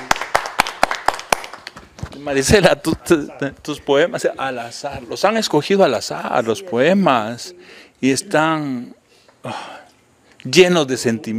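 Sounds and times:
hand claps: 0.0s - 2.2s
speech: 2.2s - 9.8s, 10.4s - 11.3s.

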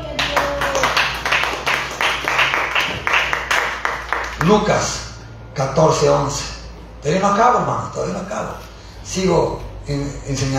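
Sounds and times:
audience clapping: 0.0s - 4.8s
speech: 4.4s - 5.0s, 5.6s - 10.5s.

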